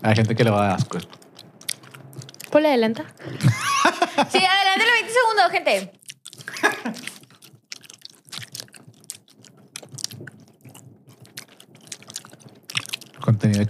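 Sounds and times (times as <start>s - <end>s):
speech: 0.0s - 1.2s, 2.5s - 6.0s, 13.3s - 13.6s
close-miked ASMR-style chewing with teeth clicking: 0.2s - 3.2s, 5.9s - 13.6s
laughter: 3.2s - 4.8s.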